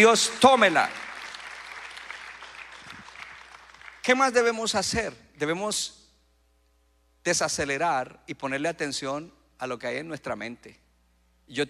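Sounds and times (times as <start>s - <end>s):
speech: 0.0s - 1.0s, 4.0s - 6.0s, 7.2s - 10.8s, 11.5s - 11.6s
audience applauding: 0.0s - 4.1s.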